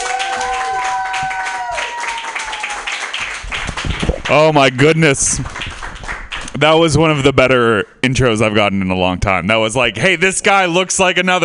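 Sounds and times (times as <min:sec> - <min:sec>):
high sustained cheering voice: 0:00.0 - 0:03.0
comedy club audience applauding a comedian's introduction: 0:00.0 - 0:06.6
speech: 0:04.3 - 0:05.7, 0:06.6 - 0:11.4.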